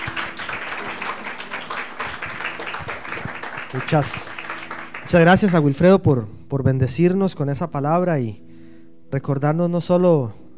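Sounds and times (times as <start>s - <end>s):
audience applause: 0.0s - 5.8s
speech: 3.7s - 4.4s, 5.1s - 8.4s, 9.1s - 10.4s.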